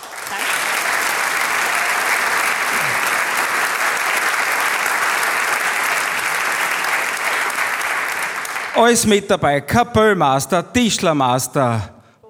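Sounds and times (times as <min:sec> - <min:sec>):
audience applause: 0:00.0 - 0:09.2
speech: 0:08.8 - 0:12.0.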